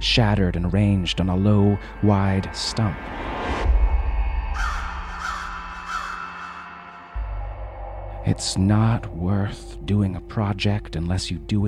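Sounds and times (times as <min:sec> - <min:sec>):
speech: 0:00.0 - 0:03.4, 0:08.3 - 0:11.6
constant low rumble: 0:00.0 - 0:05.9, 0:06.6 - 0:11.6
crow cawing: 0:04.5 - 0:07.2.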